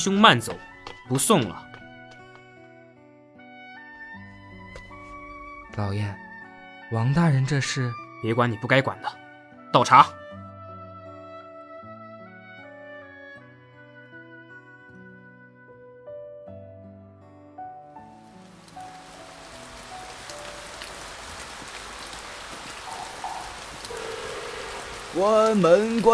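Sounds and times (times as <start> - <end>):
speech: 0.0 - 1.7, 5.8 - 6.2, 6.9 - 10.2, 25.2 - 26.1
rain falling outside the window: 18.0 - 26.1.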